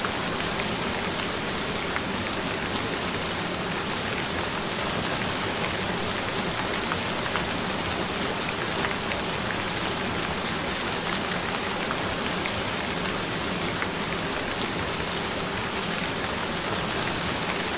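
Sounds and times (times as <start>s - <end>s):
rain: 0.0s - 17.7s.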